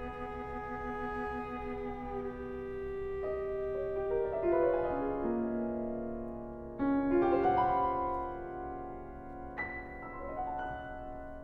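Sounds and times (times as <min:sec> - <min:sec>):
bass clarinet: 0:00.0 - 0:05.4
cello: 0:00.0 - 0:11.4
piano: 0:00.0 - 0:11.4.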